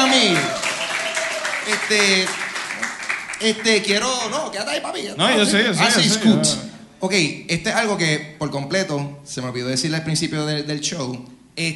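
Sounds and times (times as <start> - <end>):
whoops and shouting voices: 0.0 - 1.7
audience applauding: 0.0 - 4.5
speech: 1.6 - 2.4, 3.4 - 11.7.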